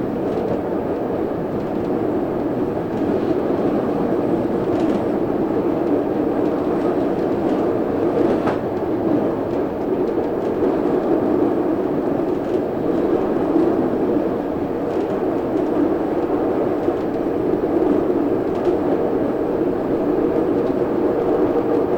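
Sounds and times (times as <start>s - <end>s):
train: 0.0s - 21.9s.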